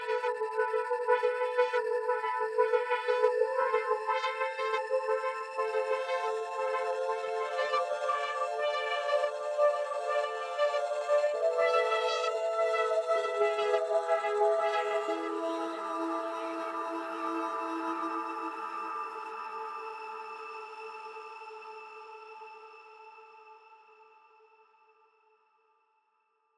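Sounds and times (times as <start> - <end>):
synths and pads: 0.0 - 19.6.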